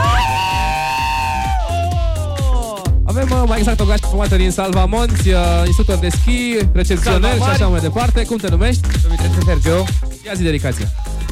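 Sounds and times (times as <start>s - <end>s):
large group shouting and cheering into a microphone: 0.0s - 3.0s, 7.0s - 7.7s, 10.1s - 11.3s
thumping beat: 0.0s - 11.3s
speech: 3.2s - 11.1s.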